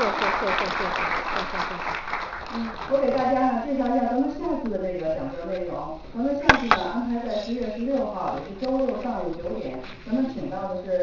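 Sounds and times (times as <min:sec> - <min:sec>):
warm audience applause welcoming a lecturer: 0:00.0 - 0:03.6
speech: 0:00.4 - 0:11.0.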